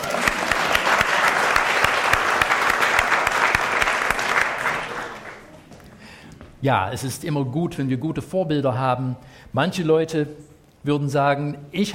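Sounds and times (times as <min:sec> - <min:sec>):
crowd applause: 0:00.0 - 0:05.6
speech: 0:06.6 - 0:11.9.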